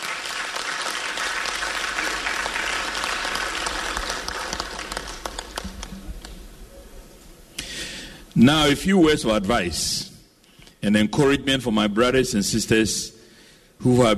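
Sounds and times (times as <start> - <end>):
audience applause: 0.0 - 6.4
speech: 8.4 - 10.1, 10.8 - 13.2, 13.8 - 14.1.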